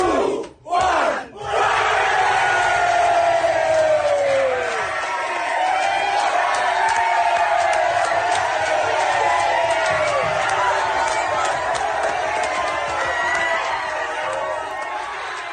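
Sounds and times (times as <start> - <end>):
crowd celebrating in Fiji: 0.0 - 15.5.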